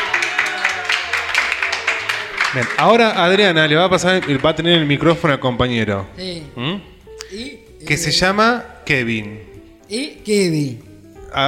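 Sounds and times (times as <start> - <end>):
small group applauding for a child: 0.0 - 5.4
speech: 2.5 - 11.4.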